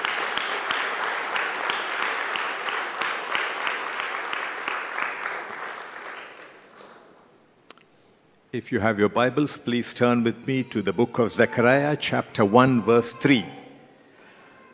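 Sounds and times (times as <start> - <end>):
audience clapping: 0.0 - 7.2
speech: 8.6 - 13.6.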